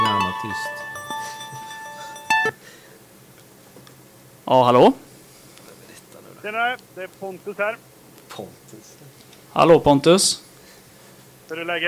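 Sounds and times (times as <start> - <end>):
phone ringing: 0.0 - 2.6
speech: 0.4 - 0.8, 4.5 - 5.0, 6.4 - 10.5, 11.5 - 11.8.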